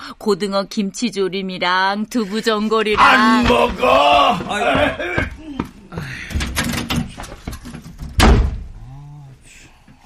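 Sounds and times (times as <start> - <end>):
speech: 0.2 - 5.3
door being shut: 6.3 - 8.7.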